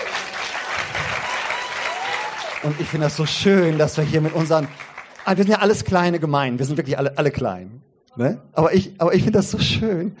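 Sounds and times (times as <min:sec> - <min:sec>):
congregation applause for a church band from Lübbecke: 0:00.0 - 0:06.5
speech: 0:02.6 - 0:10.1.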